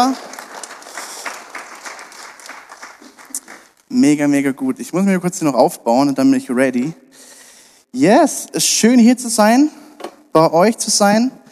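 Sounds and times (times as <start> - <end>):
speech: 0.0 - 0.3, 3.9 - 7.0, 7.9 - 11.4
audience applause: 0.0 - 3.8.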